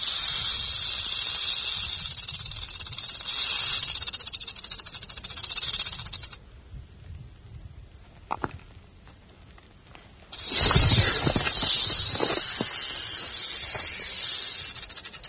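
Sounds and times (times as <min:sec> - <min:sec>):
rattlesnake rattle: 0:00.0 - 0:06.4, 0:10.3 - 0:15.2.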